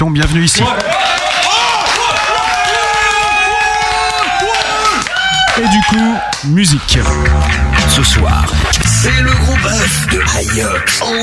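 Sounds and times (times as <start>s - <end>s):
speech: 0.0s - 1.0s, 5.6s - 11.2s
applause and cheering: 0.6s - 9.2s.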